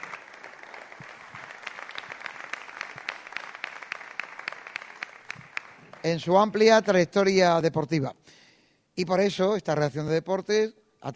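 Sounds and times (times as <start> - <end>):
audience applause: 0.0 - 6.3
speech: 6.0 - 8.3, 9.0 - 11.1.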